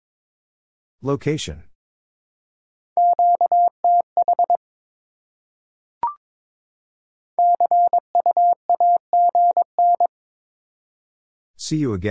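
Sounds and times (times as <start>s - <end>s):
morse code practice beeps at 22 wpm: 3.0s - 4.6s, 7.4s - 10.1s.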